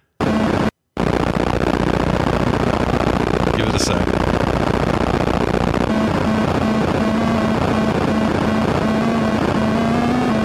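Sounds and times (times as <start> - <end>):
low buzzing tone: 0.0 - 10.4
Atari 2600 style video game helicopter sound: 3.2 - 10.4
speech: 3.8 - 4.2.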